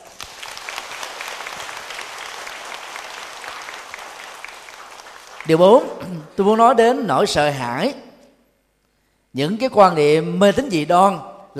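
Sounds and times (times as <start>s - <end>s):
sizable audience applause: 0.0s - 6.1s
speech: 5.5s - 8.0s, 9.3s - 11.5s.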